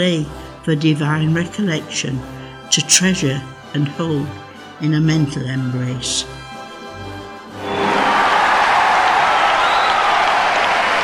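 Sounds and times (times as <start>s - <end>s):
speech: 0.0s - 6.4s
large indoor ice rink crowd roaring applause and cheering: 7.6s - 11.0s.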